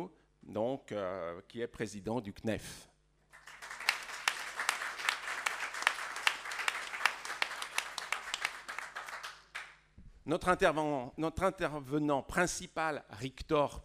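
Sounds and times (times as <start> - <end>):
speech: 0.0 - 2.9, 10.3 - 13.8
audience applauding at a conference: 3.4 - 9.7.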